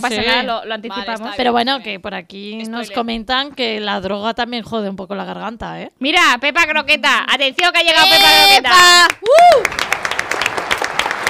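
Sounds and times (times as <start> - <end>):
speech: 0.0 - 10.0
whoop-like vocal tone: 8.0 - 9.7
studio audience clapping: 8.8 - 11.2.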